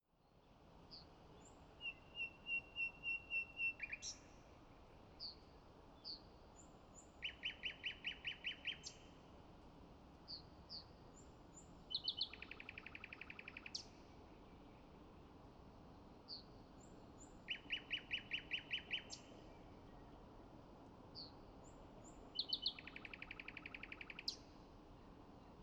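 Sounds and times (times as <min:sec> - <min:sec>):
common nightingale song: 0:00.9 - 0:04.4, 0:07.0 - 0:09.1, 0:10.3 - 0:14.0, 0:16.3 - 0:20.0, 0:21.2 - 0:24.5.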